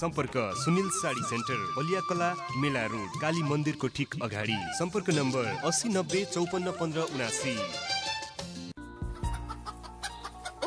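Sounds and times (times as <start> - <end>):
speech: 0.0 - 8.0
chickens clucking: 9.0 - 10.6.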